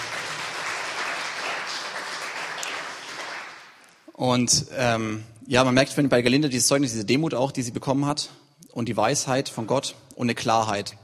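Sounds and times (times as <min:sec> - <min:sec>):
audience applause: 0:00.0 - 0:03.8
speech: 0:04.2 - 0:11.0.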